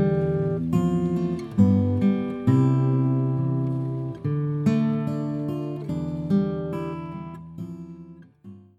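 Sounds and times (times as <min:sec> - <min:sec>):
guitar accompaniment: 0:00.0 - 0:08.7.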